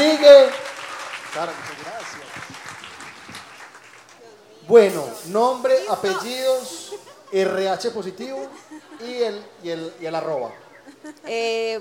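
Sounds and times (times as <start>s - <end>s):
audience applause: 0.0s - 4.2s
speech: 1.3s - 2.7s, 4.7s - 11.7s
laughter: 5.5s - 11.6s.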